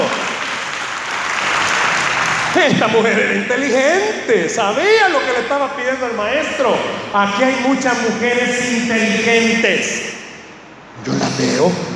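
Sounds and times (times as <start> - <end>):
audience applause: 0.0 - 3.8
laughter: 1.7 - 5.0
speech: 2.6 - 10.1, 11.0 - 11.9.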